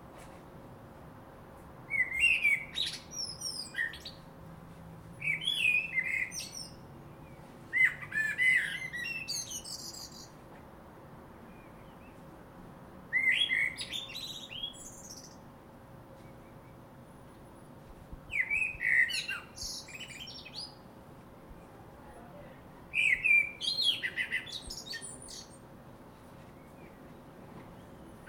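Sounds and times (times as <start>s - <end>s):
common blackbird fluty song: 1.9s - 4.3s, 5.2s - 10.4s, 11.5s - 12.3s, 13.1s - 15.5s, 16.1s - 16.9s, 18.3s - 20.8s, 22.9s - 25.6s, 26.4s - 28.2s.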